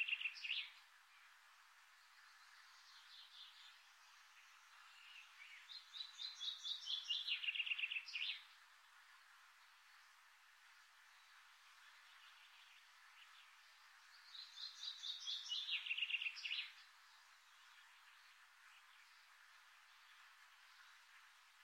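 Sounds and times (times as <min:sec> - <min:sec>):
birds singing in the morning: 0:00.0 - 0:00.8, 0:02.3 - 0:08.5, 0:12.1 - 0:19.3.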